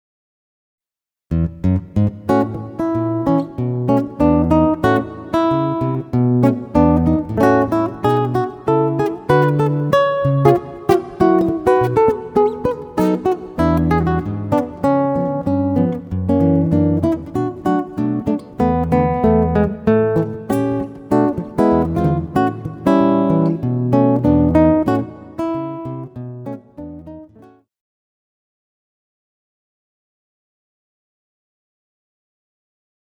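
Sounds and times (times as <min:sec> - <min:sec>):
guitar solo: 0:01.3 - 0:27.6.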